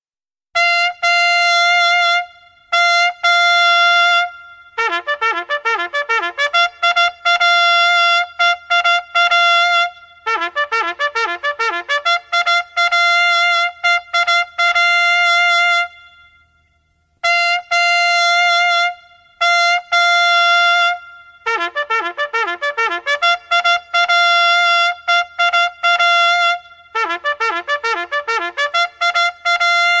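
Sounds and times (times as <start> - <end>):
bugle call: 0.6 - 29.9.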